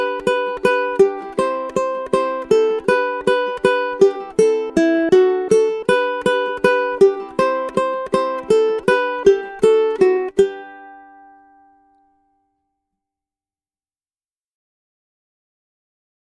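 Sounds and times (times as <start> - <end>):
ukulele: 0.0 - 12.5.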